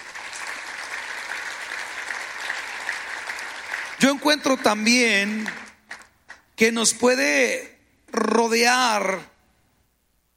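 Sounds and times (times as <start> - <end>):
audience applauding: 0.0 - 6.2
speech: 4.0 - 5.6, 6.6 - 9.3.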